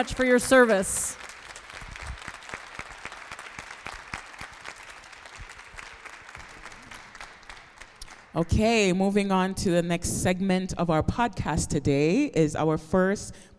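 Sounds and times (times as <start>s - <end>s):
speech: 0.0s - 1.3s, 8.4s - 13.5s
audience applause: 0.0s - 8.4s.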